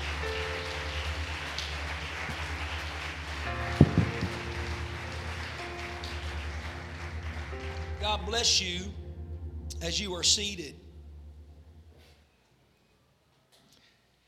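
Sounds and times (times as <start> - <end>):
audience clapping hands: 0.0 - 9.0
speech: 8.1 - 9.0, 9.8 - 10.8.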